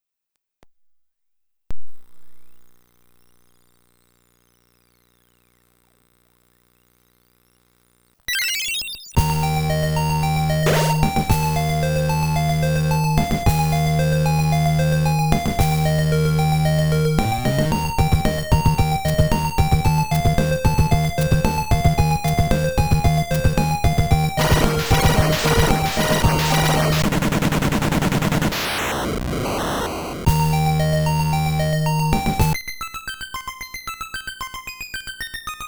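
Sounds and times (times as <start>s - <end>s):
Famicom cartridge game audio: 8.3s - 32.6s.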